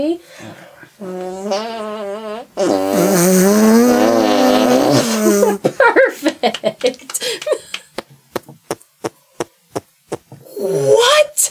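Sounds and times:
speech: 0.0s - 3.7s, 6.4s - 7.7s, 11.0s - 11.4s
musical arm farts: 1.0s - 5.6s.

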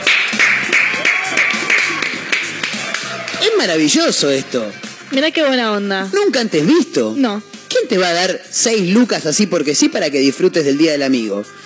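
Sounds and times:
audience applause: 0.0s - 3.5s
speech: 3.6s - 11.6s.

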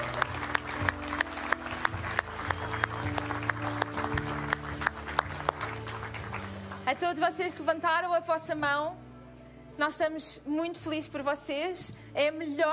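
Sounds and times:
audience applause: 0.0s - 6.9s
speech: 7.0s - 9.0s, 9.8s - 12.7s.

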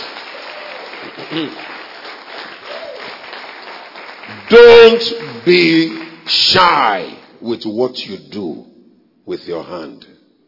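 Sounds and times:
clapping: 0.0s - 6.2s
speech: 1.0s - 1.8s, 4.5s - 8.7s, 9.3s - 10.1s.

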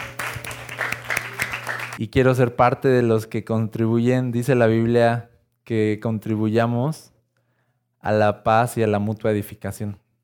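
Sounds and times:
audience applause: 0.0s - 2.0s
speech: 2.0s - 7.1s, 8.0s - 10.0s.

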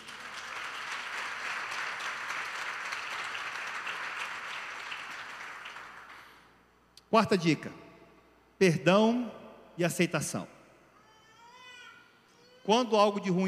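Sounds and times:
audience applause: 0.0s - 6.4s
speech: 7.1s - 7.8s, 8.6s - 10.6s, 12.7s - 13.4s.

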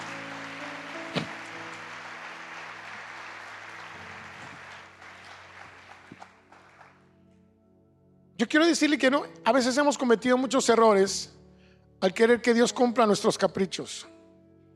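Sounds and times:
crowd applause: 0.0s - 7.0s
speech: 8.4s - 11.4s, 12.0s - 14.1s.

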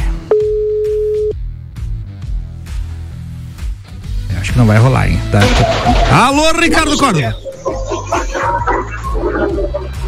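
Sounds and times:
dense music: 0.0s - 10.0s
telephone ringing tone: 0.3s - 1.3s
speech: 4.6s - 7.5s.

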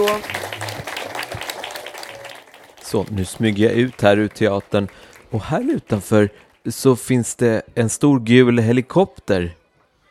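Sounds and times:
speech: 0.0s - 0.4s, 2.9s - 9.6s
theatre audience applauding: 0.0s - 7.0s.

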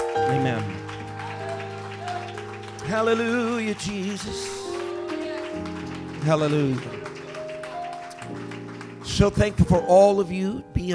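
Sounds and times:
audience hand clapping: 0.0s - 10.2s
speech: 0.3s - 0.8s, 2.9s - 4.6s, 5.6s - 7.0s, 9.1s - 10.9s.

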